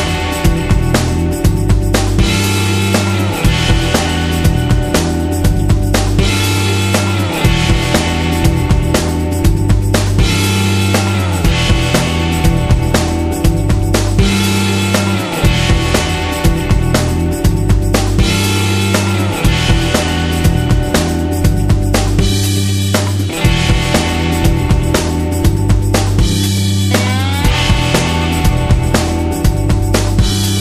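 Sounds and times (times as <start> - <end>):
funky music: 0.0 - 30.5.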